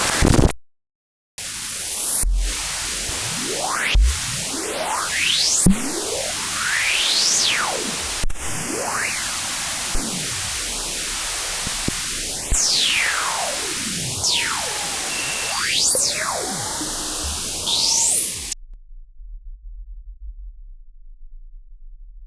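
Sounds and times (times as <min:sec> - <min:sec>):
filtered noise: 0:00.0 - 0:00.6, 0:01.4 - 0:18.6.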